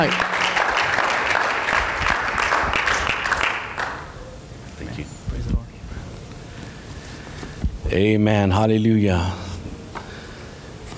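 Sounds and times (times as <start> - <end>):
speech: 0.0 - 0.3, 7.9 - 9.4
audience applause at a Friday night church service in Watsonville, California: 0.0 - 4.2.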